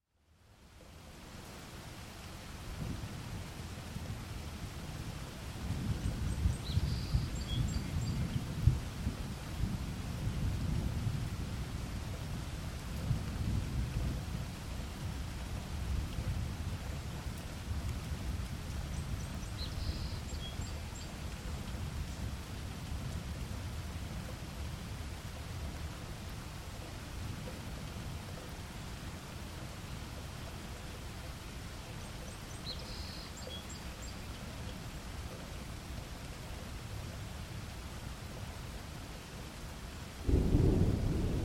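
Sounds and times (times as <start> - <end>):
rain: 0.0 - 41.4
thunder: 40.3 - 41.4.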